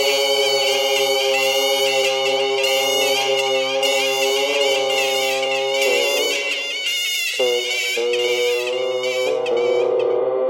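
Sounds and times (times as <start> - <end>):
geese: 0.0 - 10.2
bagpipe: 0.0 - 10.3.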